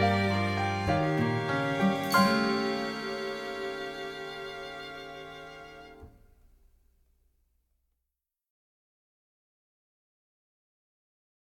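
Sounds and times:
underscore music: 0:00.0 - 0:06.2.

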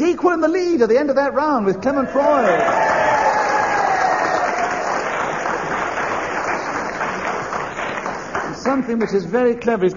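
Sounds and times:
speech: 0:00.2 - 0:02.9, 0:08.7 - 0:09.9
large audience applause: 0:02.2 - 0:09.0.

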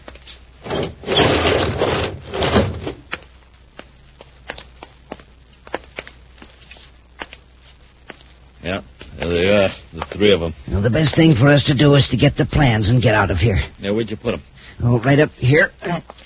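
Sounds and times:
heavy door scraping and grinding open: 0:00.6 - 0:03.0
speech: 0:09.6 - 0:16.2.

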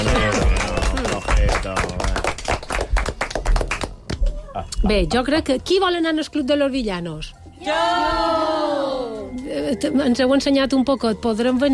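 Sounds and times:
small group applauding: 0:00.0 - 0:04.3
speech: 0:04.8 - 0:11.7.

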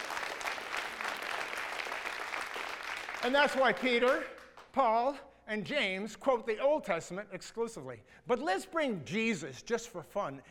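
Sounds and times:
audience applause: 0:00.0 - 0:04.4
speech: 0:03.2 - 0:10.5.

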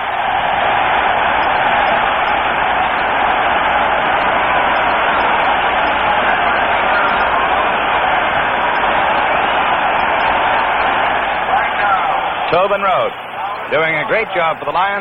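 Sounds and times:
large stadium crowd applauding departing player: 0:00.0 - 0:14.9
speech: 0:12.5 - 0:14.9.

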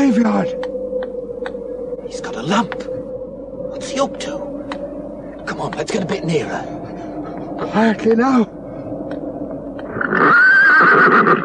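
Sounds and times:
speech: 0:00.0 - 0:00.7, 0:02.1 - 0:02.9, 0:03.8 - 0:04.5, 0:05.6 - 0:06.8, 0:07.6 - 0:08.6
low noise: 0:00.0 - 0:11.2
pony neighing near a graveyard: 0:09.9 - 0:11.4.

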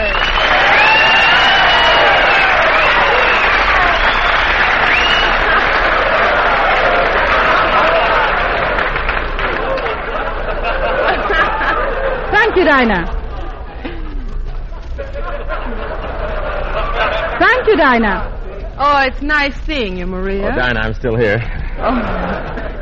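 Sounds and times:
audience whistling: 0:00.0 - 0:09.9
audience applauding: 0:00.0 - 0:12.8
laughter: 0:01.1 - 0:18.7, 0:21.1 - 0:22.8
speech: 0:12.7 - 0:13.2, 0:17.7 - 0:22.3.

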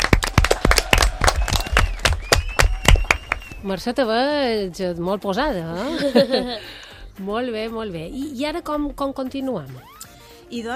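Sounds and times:
small group applauding: 0:00.0 - 0:03.6
faint whistling tones: 0:01.4 - 0:03.7
speech: 0:03.6 - 0:09.9, 0:10.5 - 0:10.7
laughter: 0:05.8 - 0:06.7.

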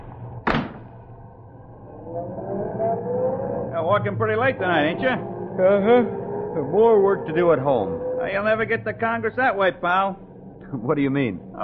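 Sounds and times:
taxi engine rumbling after being hailed: 0:00.0 - 0:11.6
speech: 0:03.8 - 0:11.6.

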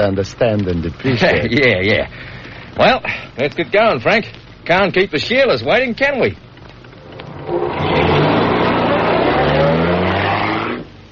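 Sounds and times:
speech: 0:00.0 - 0:06.4
car driving off: 0:07.0 - 0:10.9.

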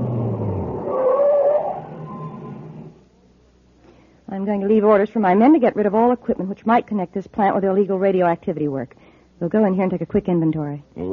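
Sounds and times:
truck engine stopping: 0:00.0 - 0:03.0
high whine: 0:00.0 - 0:03.3
speech: 0:04.4 - 0:11.1.

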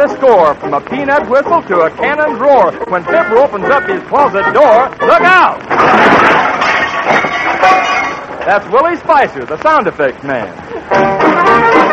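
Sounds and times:
speech: 0:00.0 - 0:11.2
window pane breaking sound effect: 0:05.7 - 0:08.6.

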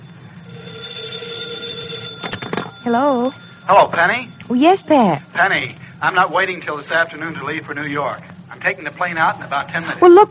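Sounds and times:
telephone ringing: 0:00.0 - 0:06.5
speech: 0:02.8 - 0:10.2.

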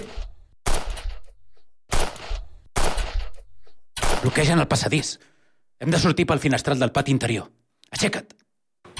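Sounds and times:
gunshots: 0:00.0 - 0:01.2, 0:01.9 - 0:03.4, 0:04.0 - 0:04.6
speech: 0:04.2 - 0:08.4.

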